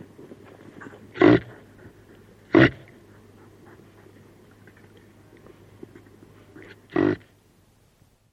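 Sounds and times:
faint low hum: 0.0s - 8.3s
reindeer grunting: 0.8s - 3.0s, 6.5s - 7.4s.

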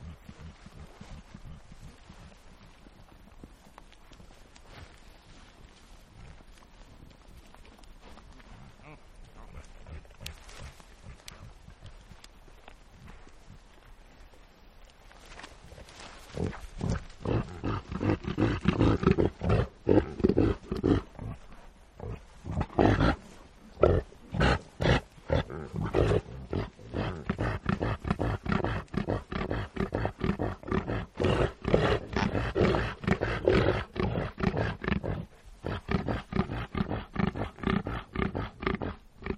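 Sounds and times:
reindeer grunting: 0.0s - 2.2s, 8.8s - 11.6s, 15.7s - 39.3s.

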